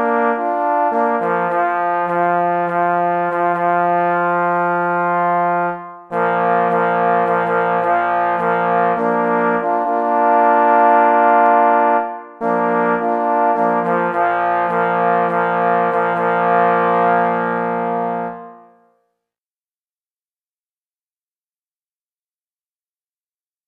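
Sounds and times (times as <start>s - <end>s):
three parforce hunting horns playing a reveille: 0.0s - 18.9s.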